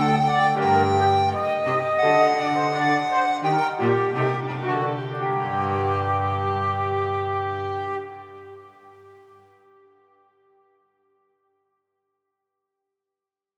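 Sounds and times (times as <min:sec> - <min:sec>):
instrumental allemande: 0:00.0 - 0:09.2.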